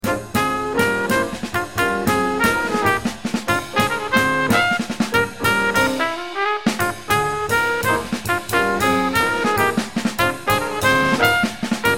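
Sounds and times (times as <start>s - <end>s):
music without bass: 0.0s - 11.9s.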